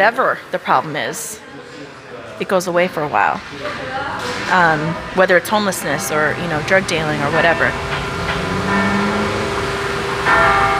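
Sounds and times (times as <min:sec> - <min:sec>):
speech: 0:00.0 - 0:01.6, 0:02.4 - 0:08.1
church bell ringing: 0:04.6 - 0:10.7.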